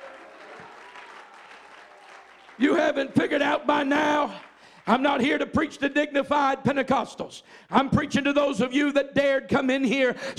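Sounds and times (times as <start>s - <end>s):
Pentecostal church congregation clapping hands: 0.0s - 5.8s
speech: 2.6s - 10.3s.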